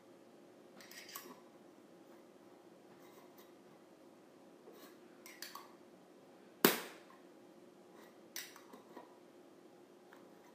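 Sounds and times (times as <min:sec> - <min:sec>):
faint steady hum: 0:00.0 - 0:10.5
tin container lid clicks and scrapes: 0:00.8 - 0:01.4.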